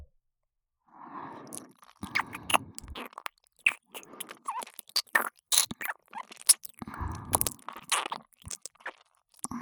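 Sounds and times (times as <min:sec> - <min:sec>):
ear kiss in right ear: 0:01.6 - 0:09.0.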